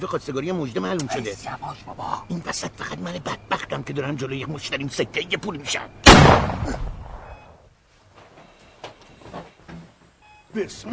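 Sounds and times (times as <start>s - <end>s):
speech: 0.0s - 6.9s, 10.6s - 10.9s
gunshot outside: 6.0s - 7.4s.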